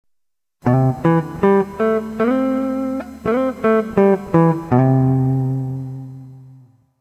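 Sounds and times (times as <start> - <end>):
country scale: 0.6 - 6.0.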